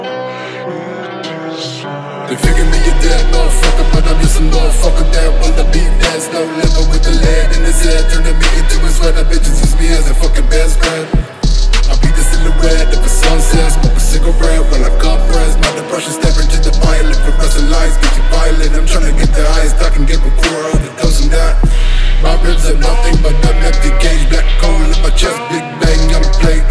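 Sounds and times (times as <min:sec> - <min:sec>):
31 33 and 35 Hz low bass tones: 0:02.4 - 0:06.1, 0:06.7 - 0:10.9, 0:11.5 - 0:15.7, 0:16.3 - 0:20.5, 0:21.0 - 0:25.3, 0:25.9 - 0:26.6.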